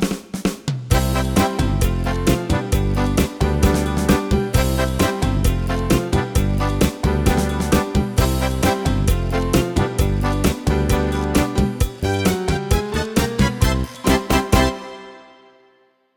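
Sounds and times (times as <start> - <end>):
PSR2000 keyboard cha-cha-cha rhythm: 0.9 - 15.4.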